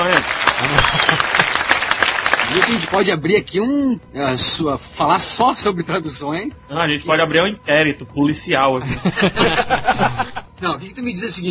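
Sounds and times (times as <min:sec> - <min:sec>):
clapping: 0:00.0 - 0:03.0
laughter: 0:00.6 - 0:01.8, 0:08.8 - 0:10.6
speech: 0:02.5 - 0:11.4.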